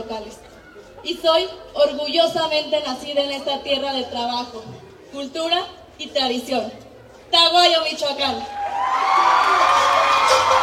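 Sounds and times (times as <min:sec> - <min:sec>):
speech: 0:00.0 - 0:10.6
audience ovation: 0:08.6 - 0:10.6.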